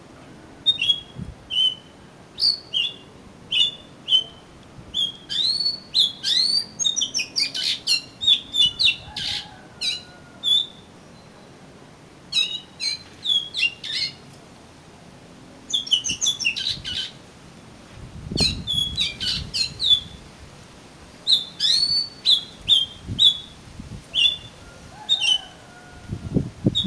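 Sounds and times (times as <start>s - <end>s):
Oriental magpie-robin song: 0.6s - 11.6s, 12.3s - 14.2s, 15.7s - 17.2s, 18.3s - 20.2s, 21.2s - 25.6s.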